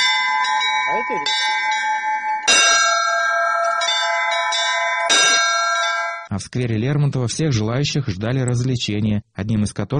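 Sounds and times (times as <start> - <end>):
church bells ringing: 0.0 - 6.3
speech: 1.0 - 1.5, 6.4 - 9.9.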